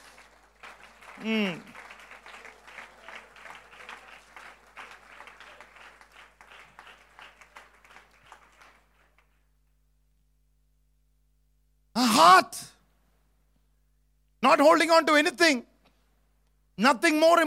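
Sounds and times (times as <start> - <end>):
audience applause: 0.0 - 9.4
speech: 1.2 - 1.7, 12.3 - 12.7, 14.4 - 15.7, 16.8 - 17.4.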